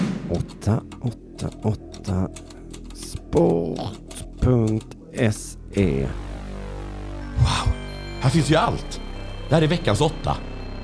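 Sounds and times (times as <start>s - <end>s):
speech: 0.3s - 2.5s, 3.3s - 6.3s, 7.4s - 10.5s
fingers typing on a polished computer keyboard: 0.3s - 5.5s.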